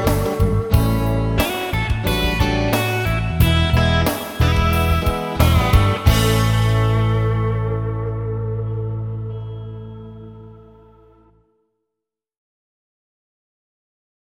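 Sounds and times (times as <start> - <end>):
cool melody: 0.0 - 11.4.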